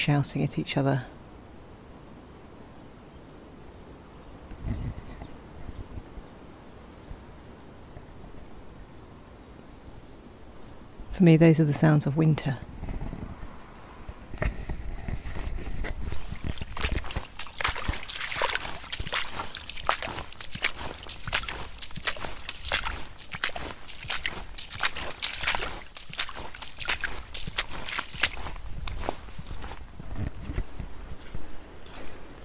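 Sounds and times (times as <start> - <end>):
speech: 0.0 - 1.2, 11.2 - 12.7
footsteps walking through a muddy field: 14.4 - 32.4.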